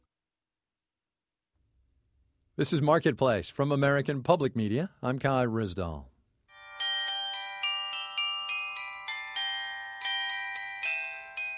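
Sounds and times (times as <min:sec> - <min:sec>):
speech: 0:02.6 - 0:06.1
church bells ringing: 0:06.5 - 0:11.5.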